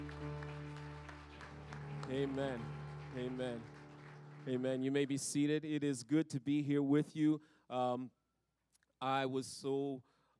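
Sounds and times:
audience clapping: 0.0s - 5.5s
speech: 2.1s - 3.8s, 4.4s - 8.2s, 9.0s - 10.1s.

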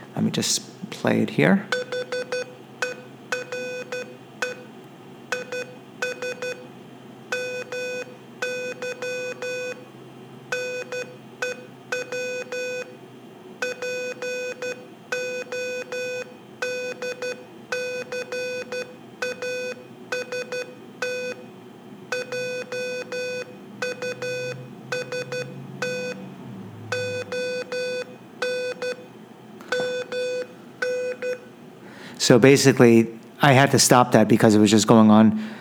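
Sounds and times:
speech: 0.2s - 1.9s, 32.3s - 35.5s
Morse code beeps: 1.7s - 4.7s, 5.3s - 6.7s, 7.3s - 9.8s, 10.5s - 12.9s, 13.6s - 21.4s, 22.1s - 31.5s.

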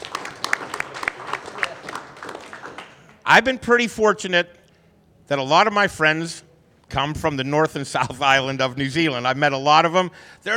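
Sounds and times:
audience applause: 0.0s - 3.2s
speech: 3.3s - 4.6s, 5.3s - 10.5s.

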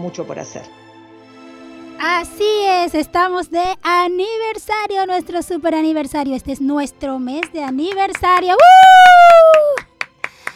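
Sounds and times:
speech: 0.0s - 0.8s, 2.0s - 9.8s
sharp claps: 7.4s - 10.5s.

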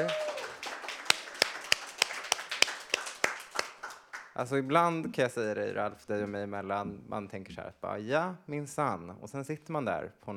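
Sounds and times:
speech: 0.0s - 0.2s, 4.4s - 10.3s
rhythmic hand clapping: 0.0s - 4.4s.

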